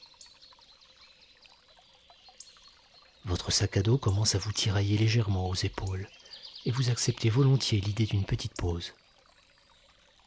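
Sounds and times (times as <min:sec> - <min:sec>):
river murmuring: 0:02.4 - 0:10.2
speech: 0:03.3 - 0:09.0.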